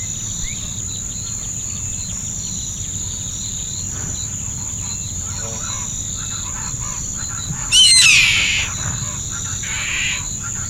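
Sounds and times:
steady high insect hum: 0:00.0 - 0:10.6
bird giving a loud harsh downward-sliding call: 0:05.6 - 0:10.6.

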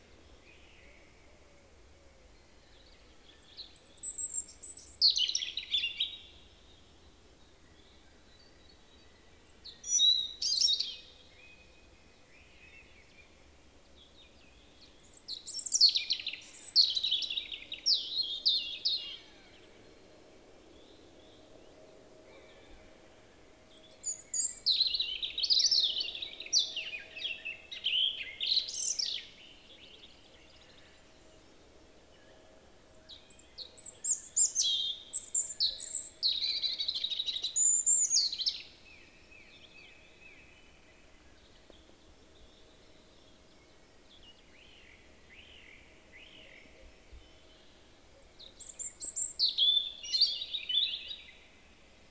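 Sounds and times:
European robin singing: 0:03.3 - 0:06.4, 0:09.1 - 0:11.5, 0:14.5 - 0:19.6, 0:23.7 - 0:31.4, 0:33.0 - 0:51.6.

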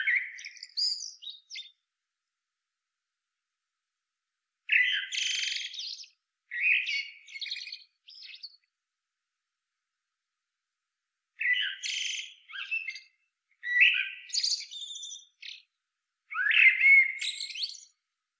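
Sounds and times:
common blackbird soft song: 0:00.0 - 0:01.9, 0:04.6 - 0:08.7, 0:11.4 - 0:18.1.

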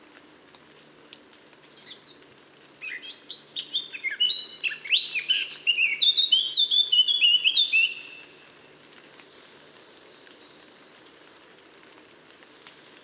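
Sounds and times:
Eurasian blackcap song: 0:01.7 - 0:08.3.

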